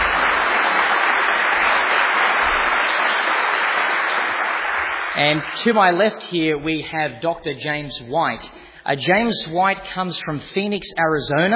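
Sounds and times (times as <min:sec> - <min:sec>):
audience applause: 0:00.0 - 0:06.4
speech: 0:05.2 - 0:11.5.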